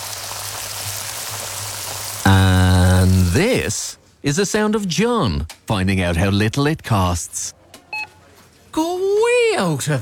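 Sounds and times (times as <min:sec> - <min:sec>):
pair of 32-day matured sirloin steaks cooking in pure Irish butter: 0:00.0 - 0:03.4
speech: 0:03.3 - 0:07.6, 0:09.6 - 0:09.9.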